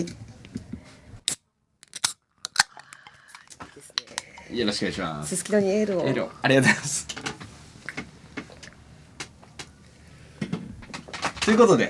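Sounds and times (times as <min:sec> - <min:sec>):
speech: 0:00.0 - 0:00.2, 0:04.5 - 0:07.3, 0:11.5 - 0:11.8
beer cans being cracked open: 0:01.3 - 0:04.2.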